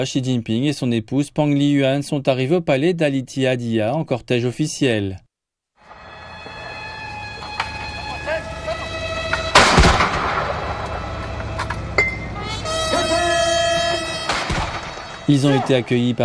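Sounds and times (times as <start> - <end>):
speech: 0.0 - 5.2, 15.3 - 16.2
steady sustained tones: 5.8 - 15.8
21-gun cannon salute: 9.2 - 12.9, 14.1 - 15.5.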